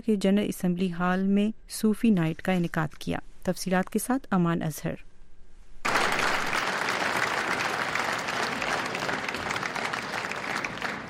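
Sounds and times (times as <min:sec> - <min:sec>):
speech: 0:00.0 - 0:05.1
large audience applause at a Sufi music concert in the UN General Assembly Hall: 0:05.9 - 0:11.0.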